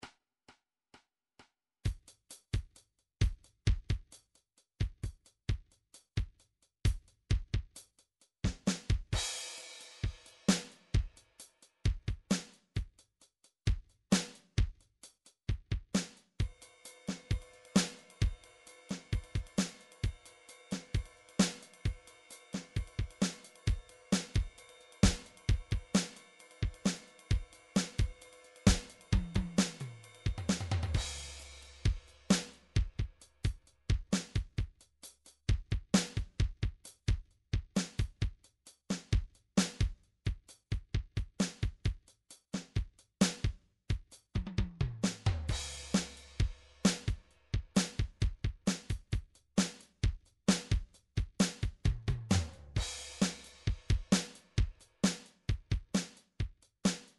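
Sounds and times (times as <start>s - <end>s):
drum track at 132 bpm: 1.8s - 57.1s.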